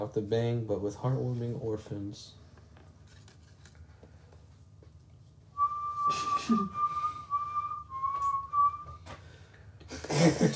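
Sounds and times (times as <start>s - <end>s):
speech: 0.0s - 2.4s, 6.1s - 6.8s
penny whistle solo: 5.6s - 9.1s.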